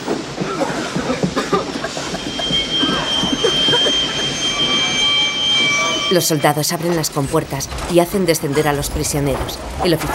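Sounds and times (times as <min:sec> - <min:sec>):
train wagons rumbling and clattering into a station: 0:00.0 - 0:10.1
high metallic squeal of train wheels: 0:01.6 - 0:08.5
speech: 0:06.1 - 0:10.1.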